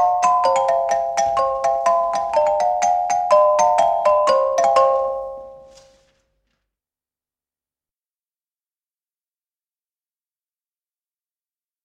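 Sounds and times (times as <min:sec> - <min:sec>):
small bells: 0:00.0 - 0:05.9.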